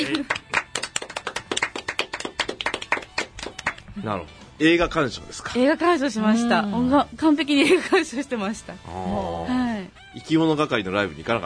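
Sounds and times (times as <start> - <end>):
few people clapping at the close of a talk about films: 0.0 - 3.9
speech: 4.0 - 9.6, 10.2 - 11.4.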